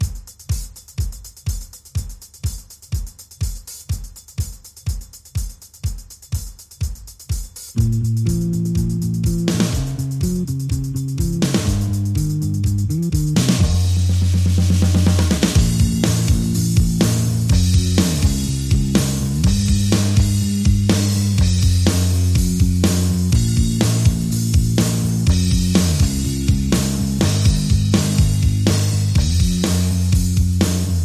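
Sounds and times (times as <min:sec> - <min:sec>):
drums: 0:00.0 - 0:31.0
bass: 0:07.7 - 0:31.0.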